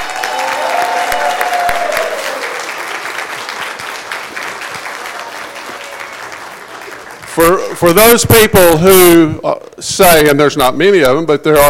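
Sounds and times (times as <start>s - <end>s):
audience applause: 0.0s - 8.2s
speech: 7.4s - 11.6s.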